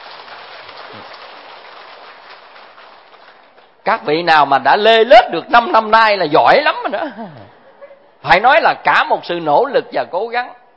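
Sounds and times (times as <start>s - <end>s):
audience applause: 0.0s - 3.8s
speech: 3.9s - 7.6s, 8.2s - 10.6s.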